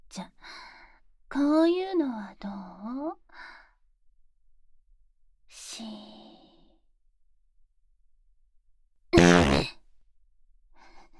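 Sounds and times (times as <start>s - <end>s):
speech: 0.2s - 0.4s, 1.4s - 3.2s
loud buzzy fart: 9.2s - 9.8s.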